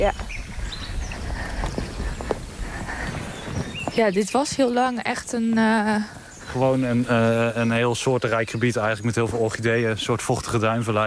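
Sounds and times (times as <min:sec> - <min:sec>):
speech: 0:00.0 - 0:00.4, 0:04.0 - 0:11.0
horse hooves clip-clopping: 0:00.0 - 0:07.2.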